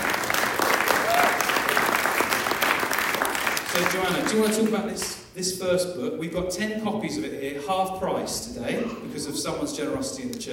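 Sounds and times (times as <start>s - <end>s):
audience cheering: 0.0s - 4.3s
audience applause: 0.0s - 4.8s
speech: 3.8s - 10.5s.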